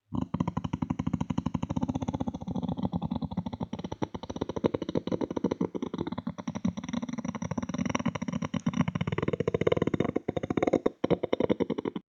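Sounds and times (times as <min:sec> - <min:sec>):
beatboxed creature growl: 0:00.1 - 0:12.1.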